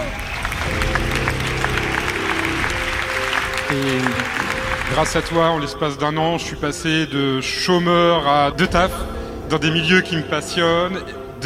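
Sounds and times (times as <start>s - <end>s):
audience applause: 0.0s - 5.8s
speech: 3.7s - 11.4s.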